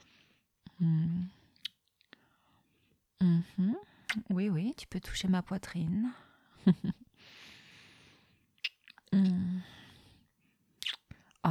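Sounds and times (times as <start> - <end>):
kissing lip smacks: 1.6 - 2.2, 4.1 - 4.3, 8.6 - 9.4, 10.8 - 11.4
speech: 3.5 - 7.0.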